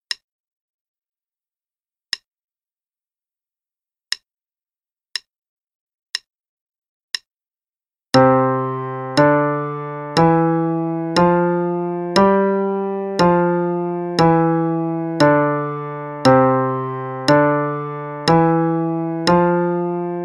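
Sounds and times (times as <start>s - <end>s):
5 finger pattern exercise in C and G: 8.2s - 20.2s.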